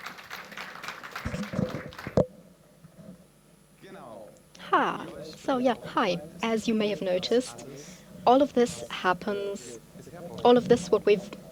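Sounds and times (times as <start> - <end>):
audience applause: 0.0 - 2.2
speech: 4.8 - 11.4.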